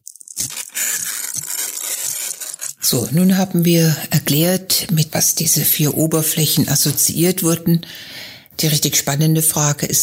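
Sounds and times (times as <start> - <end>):
coarse sandpaper rasping across a surface: 0.2 - 2.8
speech: 2.9 - 10.0.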